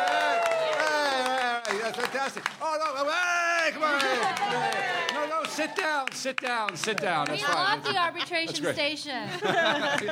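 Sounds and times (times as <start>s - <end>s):
audience whooping and cheering: 0.0s - 1.9s, 3.3s - 6.0s
audience round of applause: 0.0s - 8.0s, 9.7s - 10.1s
speech: 2.2s - 10.1s
laughter: 7.0s - 10.1s.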